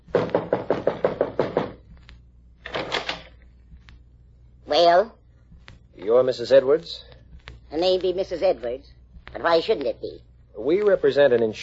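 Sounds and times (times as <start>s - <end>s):
knocking on a door: 0.0s - 1.9s
speech: 4.7s - 5.2s, 6.0s - 7.1s, 7.7s - 11.6s.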